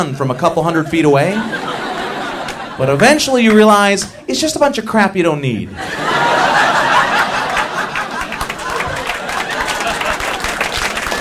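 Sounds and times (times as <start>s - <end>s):
speech: 0.0s - 1.7s, 2.8s - 6.4s
laughter: 0.7s - 4.4s, 5.7s - 11.2s
audience clapping: 6.8s - 11.2s.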